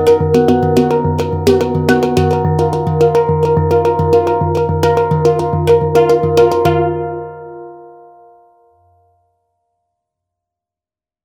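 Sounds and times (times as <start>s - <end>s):
Hang2 pan drum in D: 0.0s - 7.8s.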